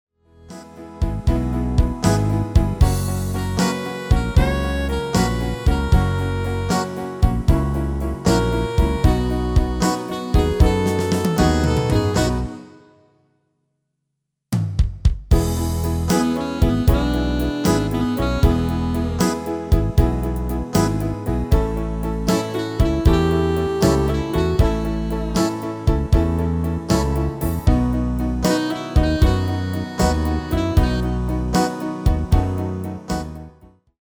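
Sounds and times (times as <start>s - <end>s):
MIDI music: 0.4s - 13.1s, 15.3s - 33.6s.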